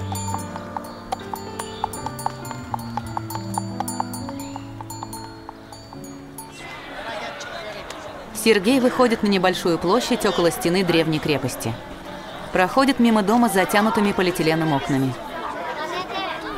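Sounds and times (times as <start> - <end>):
ram hooves clopping while led on a rope: 0.0 - 6.8
speech: 8.4 - 11.9, 12.5 - 15.2.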